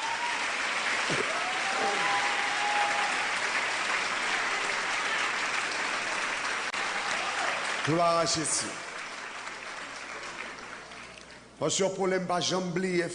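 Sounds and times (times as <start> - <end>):
audience applause: 0.0 - 11.2
speech: 7.9 - 8.9, 11.6 - 13.1.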